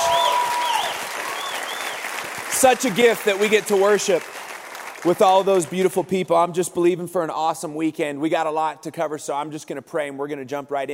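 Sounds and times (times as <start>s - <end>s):
crowd audience round of applause: 0.0s - 6.0s
speech: 2.6s - 4.4s, 5.0s - 10.9s.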